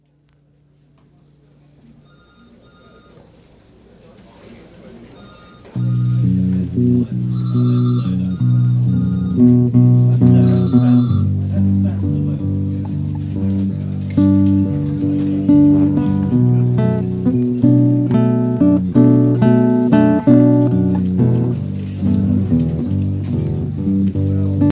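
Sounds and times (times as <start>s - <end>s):
Brazilian despacho instrumental music: 5.2s - 24.7s.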